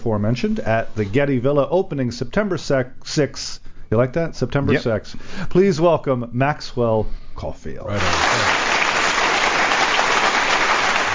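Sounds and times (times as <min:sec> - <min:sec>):
speech: 0:00.0 - 0:08.7
canned audience applause sound effect: 0:07.9 - 0:11.1.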